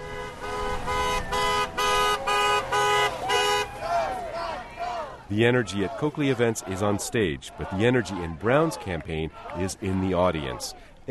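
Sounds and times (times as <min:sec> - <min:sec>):
car horns honking from passing traffic: 0:00.0 - 0:06.9
low murmur of crowd noise: 0:01.7 - 0:11.0
speech: 0:05.3 - 0:11.0.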